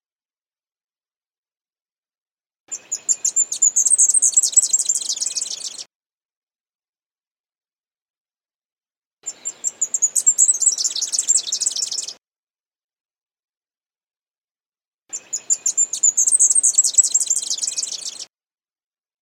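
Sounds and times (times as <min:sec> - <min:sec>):
leaf warbler song of quick chirps building into a fast trill: 0:02.7 - 0:05.9, 0:09.3 - 0:12.2, 0:15.1 - 0:18.3.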